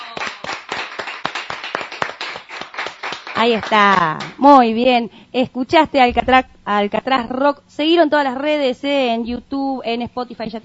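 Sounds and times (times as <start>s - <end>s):
audience applause: 0.0s - 3.8s
speech: 3.4s - 10.6s.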